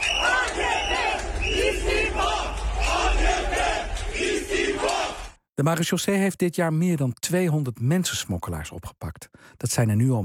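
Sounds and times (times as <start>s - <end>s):
street protesters chanting: 0.0s - 5.4s
speech: 5.6s - 10.2s.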